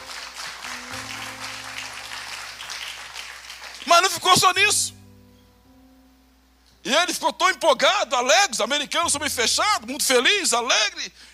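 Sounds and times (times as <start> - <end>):
audience applause: 0.0 - 4.4
speech: 3.9 - 5.0, 6.8 - 11.3.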